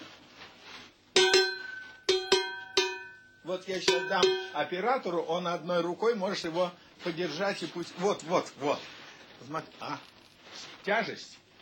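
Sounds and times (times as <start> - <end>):
large heavy cowbell ringing: 1.2 - 4.8
speech: 3.5 - 11.4.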